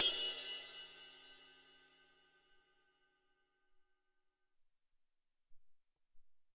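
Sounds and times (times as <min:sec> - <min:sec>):
ride cymbal from Alesis SR-18 drum machine: 0:00.0 - 0:01.8.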